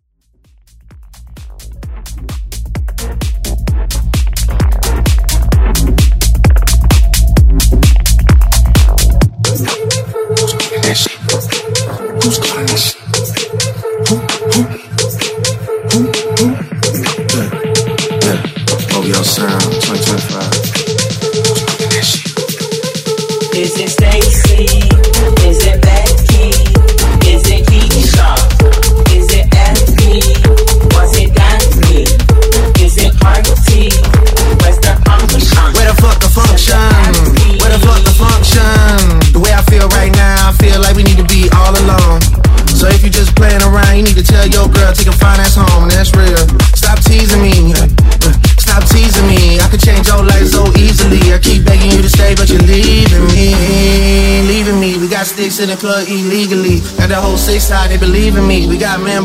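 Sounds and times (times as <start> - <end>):
music mashup: 0.1 - 59.2.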